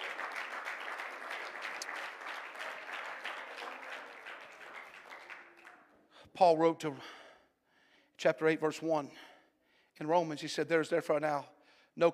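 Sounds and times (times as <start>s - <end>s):
audience clapping hands: 0.0s - 6.0s
speech: 6.4s - 7.2s, 8.2s - 9.3s, 10.0s - 12.1s.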